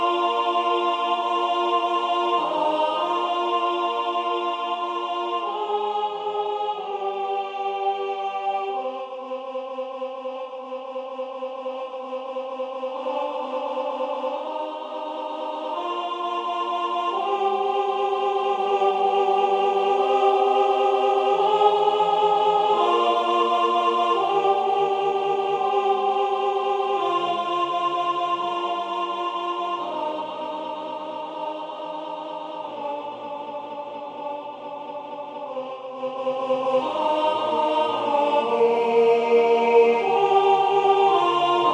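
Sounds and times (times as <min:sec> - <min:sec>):
alto voice singing sacred music: 0:00.0 - 0:41.7.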